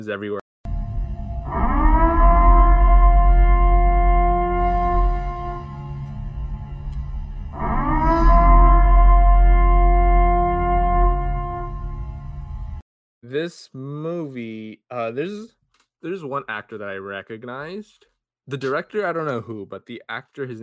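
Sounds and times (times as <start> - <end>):
speech: 0.0 - 0.4, 13.4 - 13.9, 15.1 - 20.6
civil defense siren alarm wailing: 0.7 - 12.8
deep rumble: 0.7 - 12.8.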